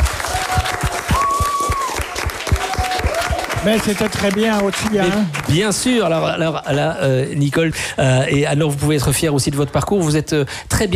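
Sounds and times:
audience applause: 0:00.0 - 0:06.2
speech: 0:03.6 - 0:10.9.

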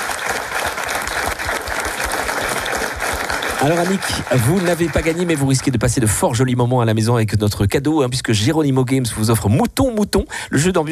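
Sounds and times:
audience applause: 0:00.0 - 0:06.2
speech: 0:03.6 - 0:10.9.

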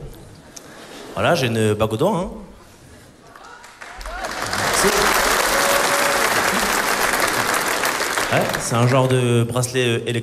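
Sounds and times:
speech: 0:01.2 - 0:02.4, 0:08.4 - 0:10.2
audience applause at a stand-up comedy show: 0:03.2 - 0:09.2.

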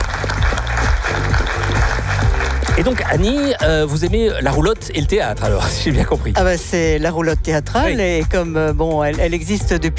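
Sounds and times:
audience applause after a presentation: 0:00.0 - 0:04.0
speech: 0:02.8 - 0:09.9.

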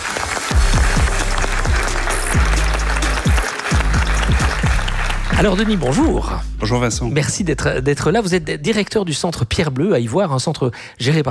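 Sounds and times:
audience applause: 0:00.0 - 0:06.2
speech: 0:05.4 - 0:11.3.

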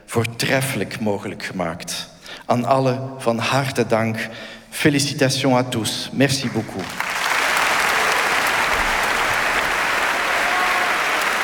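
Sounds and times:
speech: 0:00.1 - 0:07.1
concert audience clapping in a standing ovation in a concert hall: 0:06.4 - 0:11.4.

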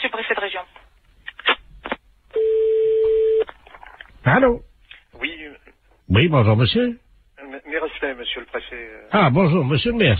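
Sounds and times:
telephone ringback tone: 0:02.4 - 0:03.4
speech: 0:04.2 - 0:04.7, 0:06.1 - 0:07.0, 0:08.2 - 0:10.1.

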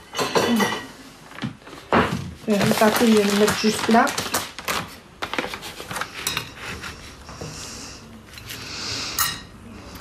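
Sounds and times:
dishes clattering as a small plate is fetched for pâté: 0:00.1 - 0:00.9, 0:09.1 - 0:09.5
speech: 0:00.5 - 0:00.8, 0:02.5 - 0:04.3.

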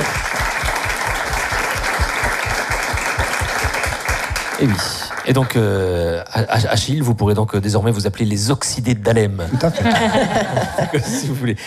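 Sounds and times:
studio audience applause: 0:00.0 - 0:05.9
speech: 0:04.6 - 0:11.6
laughter: 0:09.5 - 0:11.5.

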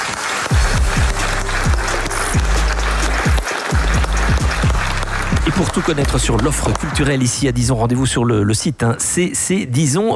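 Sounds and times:
audience applause: 0:00.0 - 0:07.6
speech: 0:05.5 - 0:10.1.

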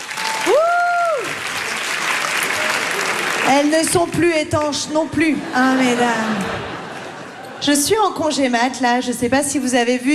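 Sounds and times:
audience applause: 0:00.0 - 0:04.1
speech: 0:03.5 - 0:06.8, 0:07.6 - 0:10.1
laughter: 0:05.2 - 0:07.9.

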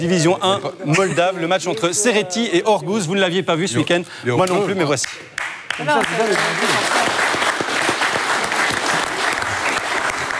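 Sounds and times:
speech: 0:00.0 - 0:07.4
studio applause: 0:05.0 - 0:10.3.

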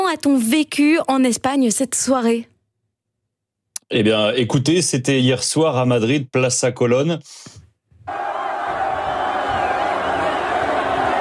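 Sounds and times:
speech: 0:00.1 - 0:02.5, 0:03.9 - 0:08.2
young crowd cheering at outdoor match screening: 0:08.1 - 0:11.1.

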